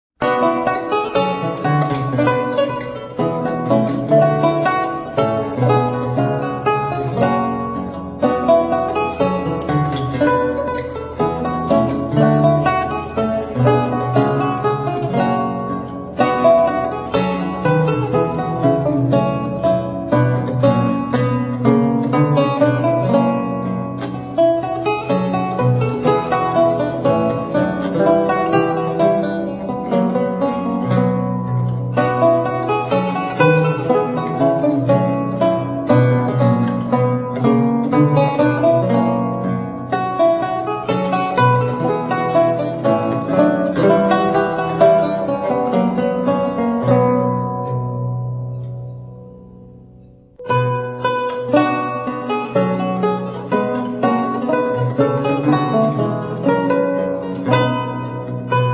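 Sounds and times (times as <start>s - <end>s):
lute playing: 0.2s - 58.7s.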